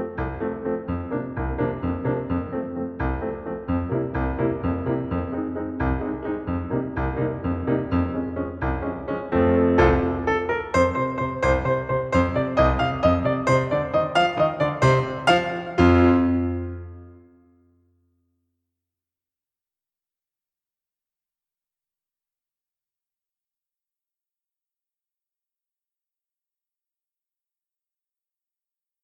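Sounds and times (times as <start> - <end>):
accompaniment in E flat: 0.0 - 17.4.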